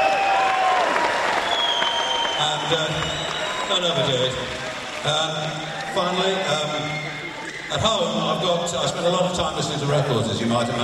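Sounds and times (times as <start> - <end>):
round of applause: 0.0 - 6.8
speech: 2.7 - 10.8.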